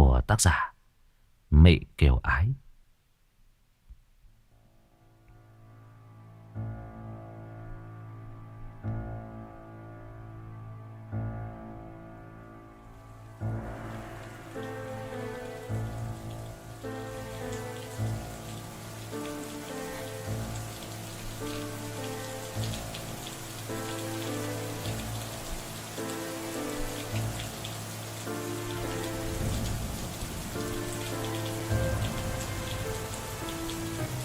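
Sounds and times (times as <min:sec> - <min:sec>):
speech: 0:00.2 - 0:00.7, 0:01.5 - 0:02.6
sustained low droning musical tones: 0:04.9 - 0:34.2
steady rain falling outside: 0:12.8 - 0:34.2.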